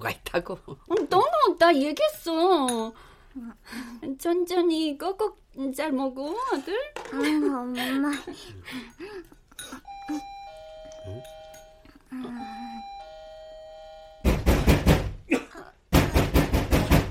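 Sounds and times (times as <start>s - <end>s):
speech: 0.0s - 10.4s, 12.1s - 12.6s
electronic doorbell chime: 9.9s - 14.3s
loud pounding knocks on door: 14.2s - 15.2s, 15.9s - 17.0s.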